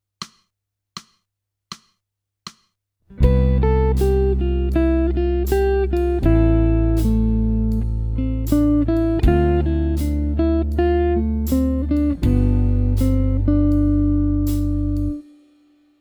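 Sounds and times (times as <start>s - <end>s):
jazz music: 3.2s - 15.2s.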